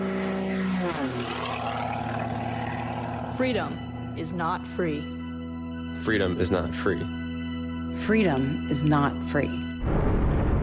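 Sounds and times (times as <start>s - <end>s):
Folds of Honor biplane propeller engine droning before takeoff at an air show: 0.0s - 6.0s
speech: 3.4s - 5.2s, 6.0s - 7.2s, 7.9s - 10.3s.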